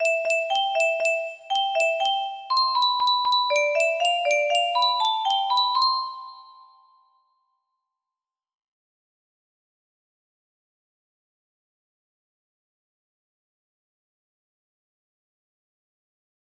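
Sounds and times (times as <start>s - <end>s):
music box melody: 0.0s - 7.2s.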